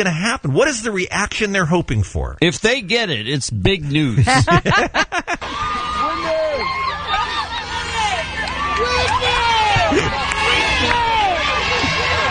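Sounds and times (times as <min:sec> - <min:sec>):
speech: 0:00.0 - 0:06.8
laughter: 0:03.8 - 0:08.3, 0:09.2 - 0:12.2
large crowd of fans screaming: 0:05.4 - 0:12.2.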